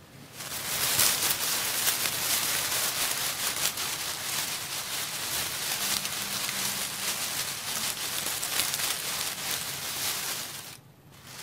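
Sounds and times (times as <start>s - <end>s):
leaves rustling: 0.2s - 11.4s.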